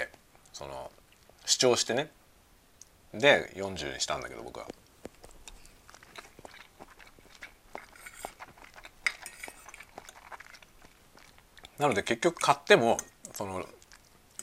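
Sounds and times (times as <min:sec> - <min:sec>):
speech: 0:00.6 - 0:02.2, 0:03.1 - 0:04.8, 0:11.8 - 0:13.8
soft wet chewing and slurping of spaghetti: 0:04.1 - 0:14.4
metallic fork clinking against a plate: 0:09.0 - 0:09.8.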